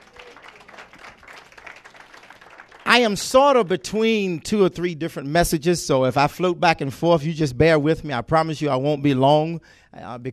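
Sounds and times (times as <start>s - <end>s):
audience clapping hands in praise: 0.0s - 3.8s
speech: 3.0s - 10.3s.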